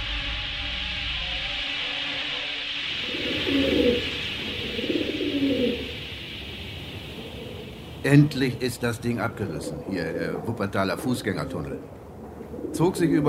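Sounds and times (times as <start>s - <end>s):
steady hiss: 0.0s - 13.2s
pigeons cooing: 3.0s - 13.2s
speech: 8.0s - 12.0s, 12.7s - 13.2s.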